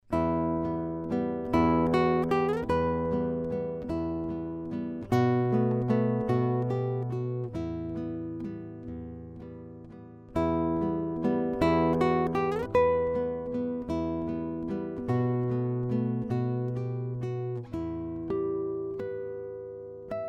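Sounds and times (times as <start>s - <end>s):
classical guitar: 0.0s - 20.2s.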